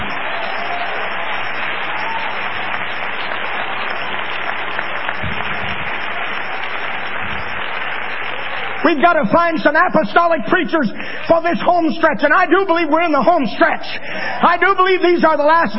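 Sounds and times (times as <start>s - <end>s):
audience clapping hands: 0.0s - 11.3s
speech: 8.9s - 15.7s.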